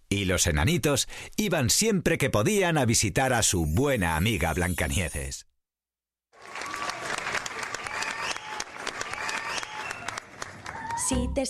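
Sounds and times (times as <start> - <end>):
speech: 0.2 - 5.5, 11.1 - 11.4
applause: 6.3 - 11.4.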